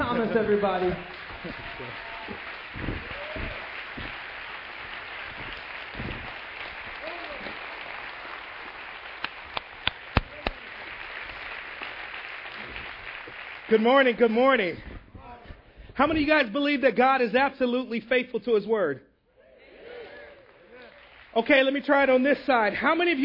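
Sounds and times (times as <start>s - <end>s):
church audience applause welcoming a speaker: 0.0s - 14.3s, 20.1s - 22.0s
speech: 0.2s - 2.9s, 13.7s - 14.9s, 16.0s - 19.1s, 21.3s - 23.2s.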